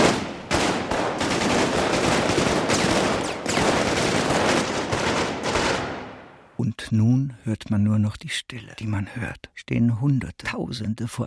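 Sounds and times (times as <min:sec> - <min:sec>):
machine gun fire: 0:00.0 - 0:06.3
speech: 0:06.8 - 0:11.2.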